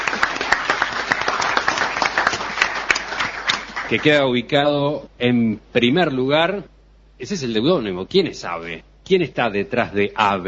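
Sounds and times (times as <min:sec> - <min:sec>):
audience clapping at a short-story contest award ceremony: 0:00.0 - 0:04.3
speech: 0:03.9 - 0:10.4.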